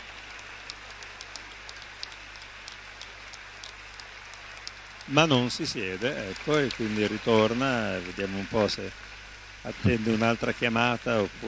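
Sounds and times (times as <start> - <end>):
concert audience applauding: 0.0 - 8.8
speech: 5.1 - 9.0, 9.6 - 11.4.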